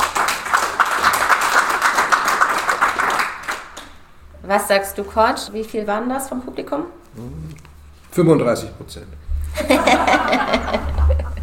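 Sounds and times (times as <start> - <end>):
crowd clapping: 0.0 - 4.1
speech: 4.5 - 7.6, 8.2 - 10.8
laughter: 9.5 - 11.4.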